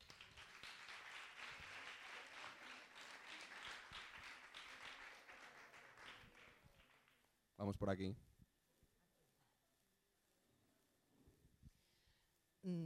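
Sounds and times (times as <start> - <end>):
audience applause: 0.0 - 7.2
speech: 7.6 - 8.3.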